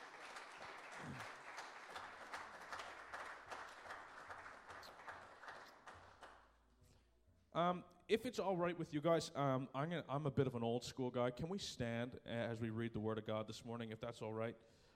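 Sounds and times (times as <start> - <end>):
crowd applauding: 0.0 - 6.4
speech: 1.0 - 1.4, 7.6 - 14.8.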